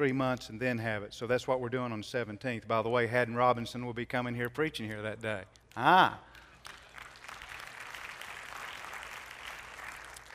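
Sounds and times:
speech: 0:00.0 - 0:06.3
audience applause: 0:06.6 - 0:10.3.

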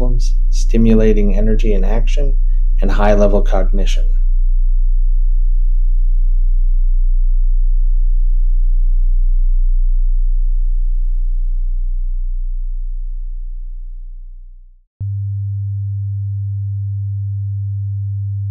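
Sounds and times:
very low-pitched pure tone at a beta brainwave frequency: 0:00.0 - 0:18.4
speech: 0:00.7 - 0:04.2.

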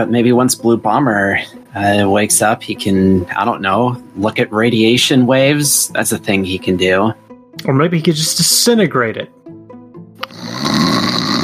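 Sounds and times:
speech: 0:00.0 - 0:09.4
person snoring: 0:10.2 - 0:11.4.

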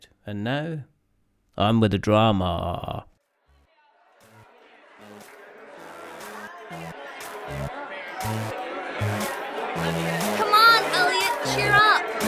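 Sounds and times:
speech: 0:00.2 - 0:00.9, 0:01.6 - 0:03.1, 0:08.2 - 0:08.6
crowd chatter: 0:03.8 - 0:12.2.

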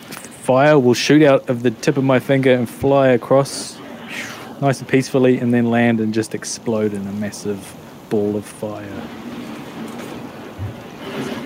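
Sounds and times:
hail: 0:00.0 - 0:11.4
speech: 0:00.5 - 0:03.8, 0:04.6 - 0:09.3
massive thunderstorm outside: 0:08.8 - 0:11.4.

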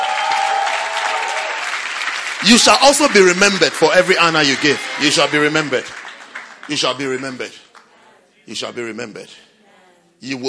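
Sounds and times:
audience applause: 0:00.0 - 0:07.9
speech: 0:02.4 - 0:06.0, 0:06.7 - 0:07.6, 0:08.5 - 0:09.5, 0:10.2 - 0:10.4.

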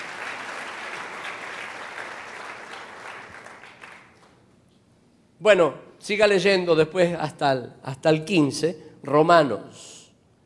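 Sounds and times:
audience applauding: 0:00.0 - 0:04.4
speech: 0:05.4 - 0:10.0.

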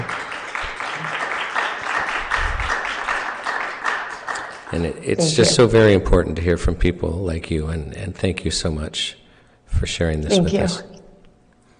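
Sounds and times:
audience clapping: 0:00.0 - 0:05.7
speech: 0:04.7 - 0:09.2, 0:09.8 - 0:11.0.

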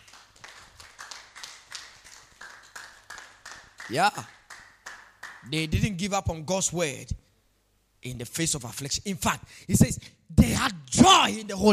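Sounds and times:
group of people clapping in rhythm: 0:00.0 - 0:05.5
speech: 0:03.9 - 0:04.4, 0:05.4 - 0:07.2, 0:08.0 - 0:11.7.

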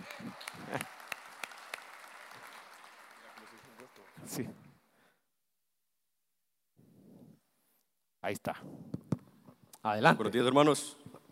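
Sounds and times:
audience applause: 0:00.0 - 0:04.4
speech: 0:04.4 - 0:04.6, 0:08.3 - 0:09.0, 0:09.8 - 0:11.0.

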